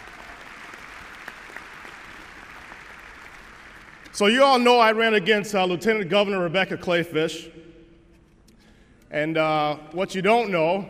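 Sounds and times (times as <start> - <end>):
audience applause: 0.0 - 4.1
speech: 4.2 - 7.6, 9.1 - 10.8.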